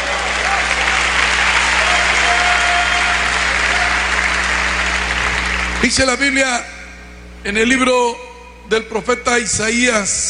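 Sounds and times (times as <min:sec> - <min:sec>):
audience applause: 0:00.0 - 0:05.8
speech: 0:05.9 - 0:06.8, 0:07.4 - 0:10.2.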